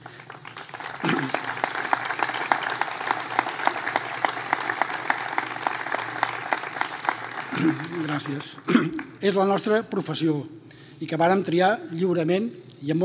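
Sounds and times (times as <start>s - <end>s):
audience applause: 0.0s - 8.7s
speech: 7.6s - 13.0s.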